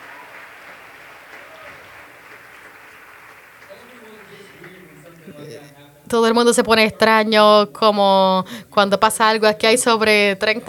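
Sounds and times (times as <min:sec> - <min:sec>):
crowd applause: 0:00.0 - 0:05.4
speech: 0:05.4 - 0:10.6.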